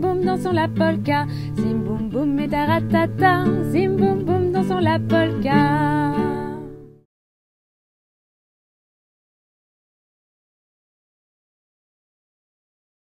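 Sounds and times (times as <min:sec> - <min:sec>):
children's carnival song: 0:00.0 - 0:06.8.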